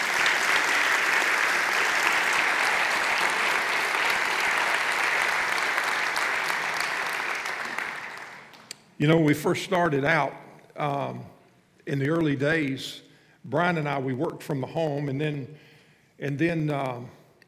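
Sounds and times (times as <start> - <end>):
sustained applause from a large gathering: 0.0 - 8.7
speech: 9.0 - 17.2.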